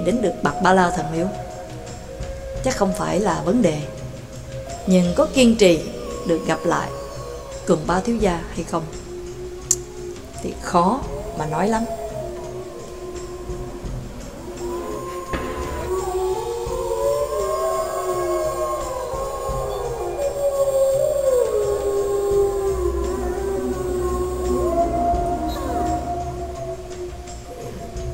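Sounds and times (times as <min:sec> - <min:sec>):
speech: 0:00.0 - 0:01.5, 0:02.6 - 0:04.0, 0:04.8 - 0:07.0, 0:07.7 - 0:09.0, 0:10.4 - 0:12.0
long mournful howls carried on the wind: 0:00.0 - 0:28.1.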